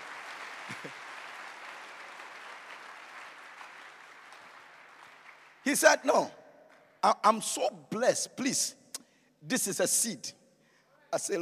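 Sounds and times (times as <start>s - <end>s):
audience clapping hands: 0.0s - 5.9s
speech: 5.6s - 6.4s, 7.0s - 8.8s, 9.4s - 10.4s, 11.1s - 11.4s.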